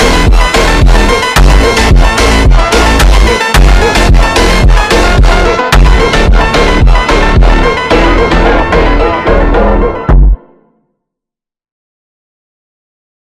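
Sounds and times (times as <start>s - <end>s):
slowed funk phonk music: 0.0s - 10.5s.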